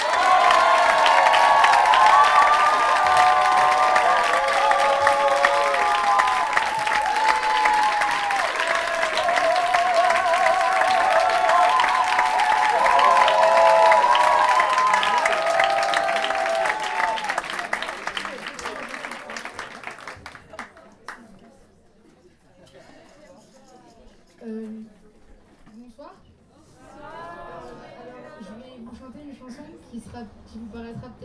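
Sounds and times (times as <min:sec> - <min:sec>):
audience applauding loudly: 0:00.0 - 0:21.2.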